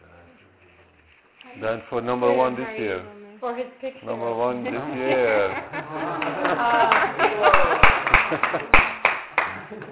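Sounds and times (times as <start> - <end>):
speech: 1.5 - 8.9, 9.7 - 9.9
laughter: 4.6 - 9.9
people clapping: 6.0 - 9.9.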